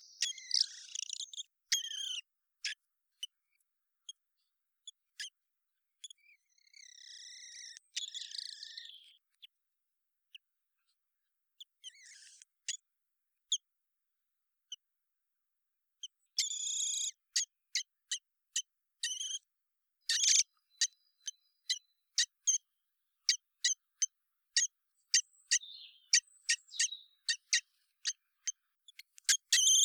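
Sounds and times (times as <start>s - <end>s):
common blackbird giving sharp dry ticking calls: 0.0s - 2.2s, 6.0s - 9.2s, 16.4s - 19.4s, 20.0s - 22.6s, 23.2s - 29.8s.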